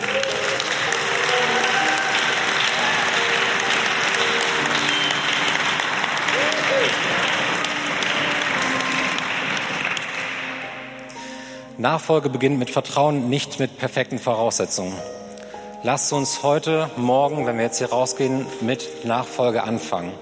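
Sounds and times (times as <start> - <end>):
audience applause: 0.0 - 11.1
speech: 11.8 - 15.2, 15.8 - 20.2.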